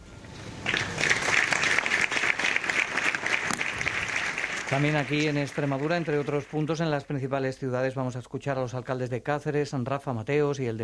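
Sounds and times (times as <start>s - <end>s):
crowd applauding after a minute of silence: 0.6s - 7.2s
speech: 4.7s - 10.8s.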